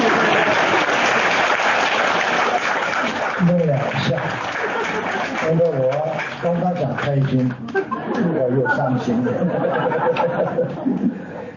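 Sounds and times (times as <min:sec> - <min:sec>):
laughter: 0:00.0 - 0:00.9, 0:04.1 - 0:05.7, 0:07.4 - 0:11.5
audience applause: 0:00.0 - 0:07.8
speech: 0:06.4 - 0:07.8, 0:08.4 - 0:11.2.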